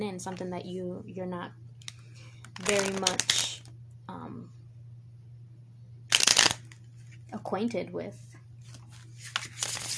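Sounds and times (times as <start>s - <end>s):
speech: 0.0s - 1.6s, 2.6s - 3.5s, 4.1s - 4.6s, 7.3s - 8.3s
low hum: 0.0s - 9.3s
deck of cards being shuffled: 2.4s - 3.6s, 6.1s - 7.2s, 8.6s - 9.9s.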